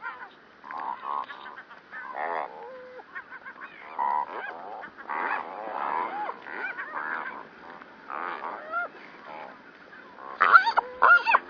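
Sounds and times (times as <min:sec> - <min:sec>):
cormorants croaking in a chorus of nasal honking croaks: 0:00.0 - 0:11.4.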